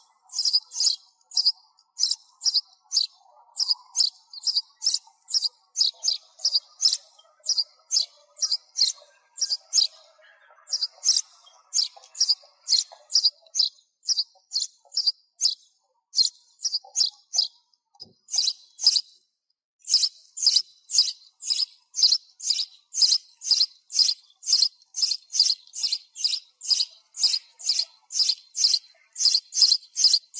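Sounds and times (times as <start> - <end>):
sparrow chirping: 0.0 - 19.2, 19.8 - 30.3.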